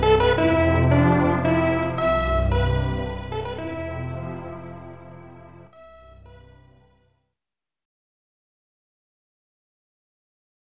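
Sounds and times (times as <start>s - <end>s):
easy ending music: 0.0s - 6.1s.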